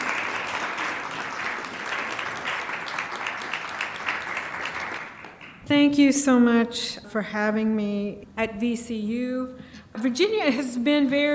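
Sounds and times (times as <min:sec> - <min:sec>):
warm round of audience applause: 0:00.0 - 0:05.6
speech: 0:05.7 - 0:11.3.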